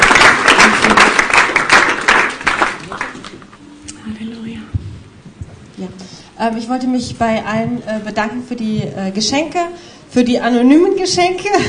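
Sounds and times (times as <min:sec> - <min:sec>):
audience applause: 0:00.0 - 0:03.5
speech: 0:06.4 - 0:11.6.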